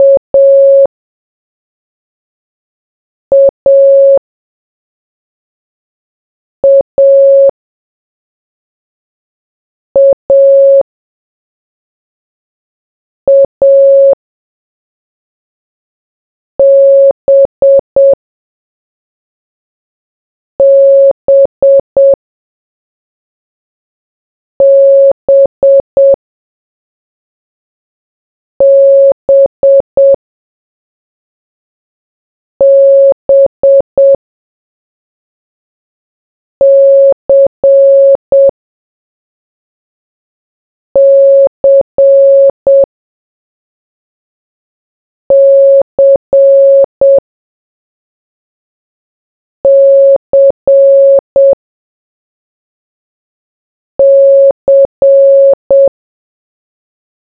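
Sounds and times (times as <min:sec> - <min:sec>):
morse code beeps: 0:00.0 - 0:00.9, 0:03.3 - 0:04.2, 0:06.6 - 0:07.5, 0:10.0 - 0:10.8, 0:13.3 - 0:14.2, 0:16.6 - 0:18.2, 0:20.6 - 0:22.2, 0:24.6 - 0:26.2, 0:28.6 - 0:30.2, 0:32.6 - 0:34.2, 0:36.6 - 0:38.5, 0:41.0 - 0:42.9, 0:45.3 - 0:47.2, 0:49.6 - 0:51.6, 0:54.0 - 0:55.9.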